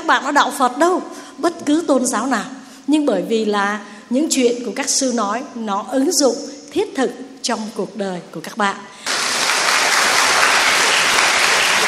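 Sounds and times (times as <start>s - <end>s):
speech: 0.1s - 8.9s
audience applause: 9.1s - 11.8s.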